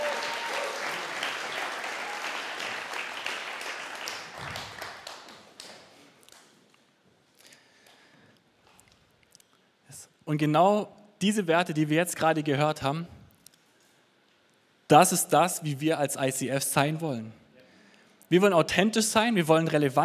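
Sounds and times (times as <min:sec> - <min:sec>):
audience applause: 0:00.0 - 0:06.4
speech: 0:10.3 - 0:13.2, 0:14.9 - 0:17.4, 0:18.3 - 0:20.0.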